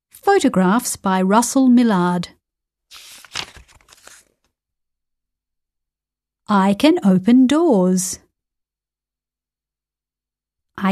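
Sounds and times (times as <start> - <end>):
speech: 0.3 - 2.4, 6.5 - 8.2
book pages being turned: 2.9 - 4.5.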